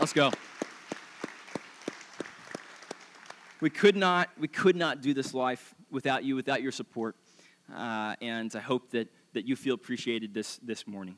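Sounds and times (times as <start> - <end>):
speech: 0.0 - 0.5, 3.6 - 11.1
audience round of applause: 0.0 - 3.6.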